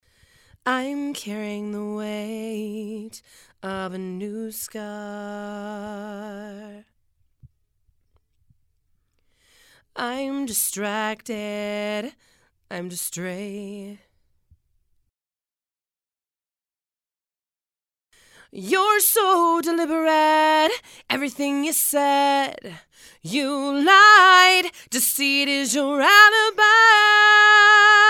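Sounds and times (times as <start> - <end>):
female vocals: 0.6 - 7.0, 9.9 - 14.1, 18.4 - 28.0.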